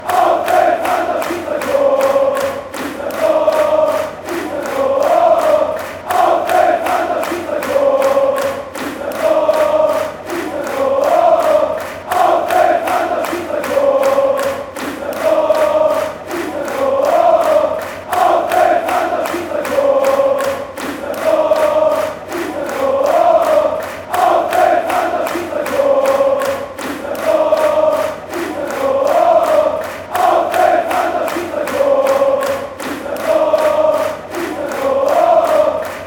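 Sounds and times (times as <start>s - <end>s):
football fans chanting after a goal: 0.0s - 36.0s.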